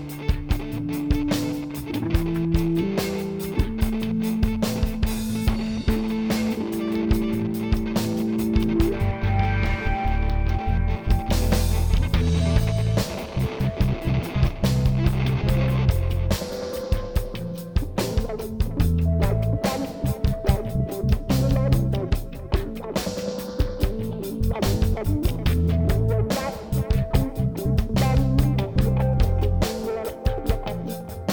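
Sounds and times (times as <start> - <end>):
ambient dub electronic music: 0.5 - 31.3.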